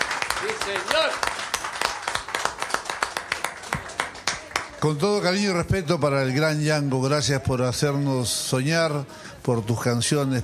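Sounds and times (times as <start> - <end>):
audience applause: 0.0 - 5.0
speech: 0.4 - 1.4, 4.8 - 10.4.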